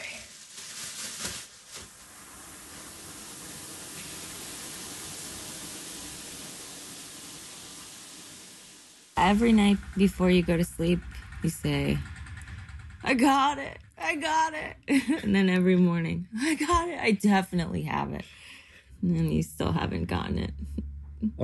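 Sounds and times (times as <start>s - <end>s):
shower water running: 1.4s - 15.2s
speech: 9.2s - 12.1s, 13.1s - 21.4s.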